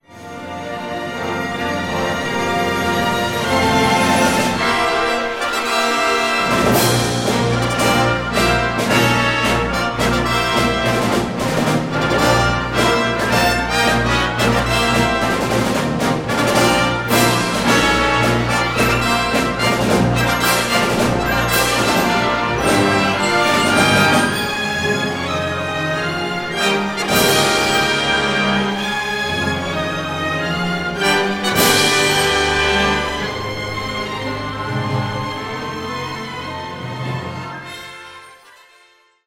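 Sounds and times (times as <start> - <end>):
fanfare overture: 0.1 - 39.2.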